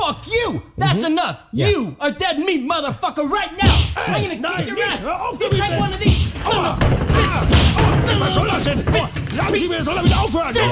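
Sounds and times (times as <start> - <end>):
people shouting and grunting: 0.0 - 10.7
speech: 0.1 - 10.7
punches landing on a body: 5.5 - 9.1.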